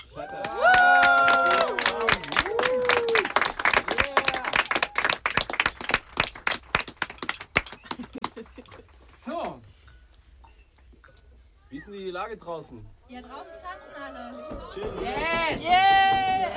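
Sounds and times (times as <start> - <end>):
applause: 0.2 - 8.8
speech: 12.2 - 16.5.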